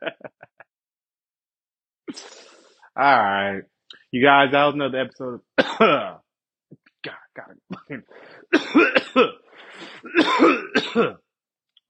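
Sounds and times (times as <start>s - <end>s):
laughter: 0.0s - 0.7s
speech: 3.0s - 6.1s, 7.9s - 9.4s
coughing: 5.6s - 6.2s, 7.0s - 11.3s.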